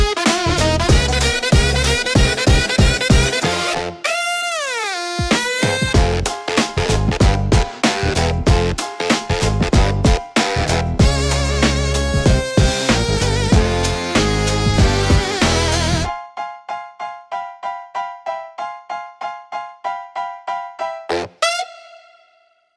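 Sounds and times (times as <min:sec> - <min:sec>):
comic book bounce music: 0:00.0 - 0:16.1, 0:21.0 - 0:22.6.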